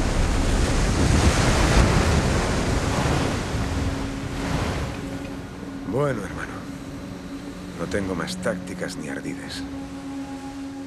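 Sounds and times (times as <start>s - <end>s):
ship cutting through ocean waves: 0.0s - 8.6s
speech: 6.0s - 6.4s, 7.8s - 10.0s.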